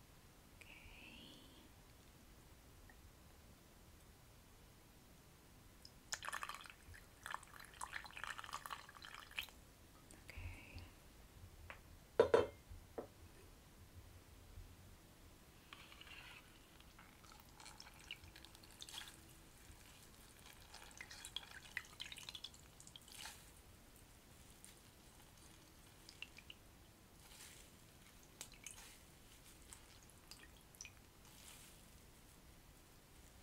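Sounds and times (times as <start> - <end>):
faint low hum: 0.0 - 33.4
small drip-like wet sounds: 5.8 - 10.9, 16.8 - 23.5, 24.6 - 26.6, 27.2 - 31.6
soft rustling and brushing of facial treatment and scalp massage: 23.0 - 33.4.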